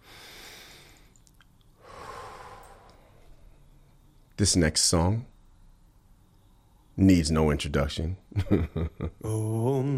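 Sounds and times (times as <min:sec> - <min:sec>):
slow deliberate breathing: 0:00.0 - 0:01.2, 0:01.8 - 0:04.1
speech: 0:04.4 - 0:05.3, 0:07.0 - 0:09.9.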